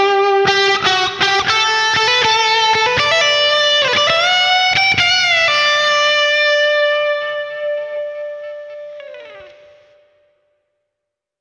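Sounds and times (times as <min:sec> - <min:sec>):
guitar through vintage digital large hall reverb: 0:00.0 - 0:10.6.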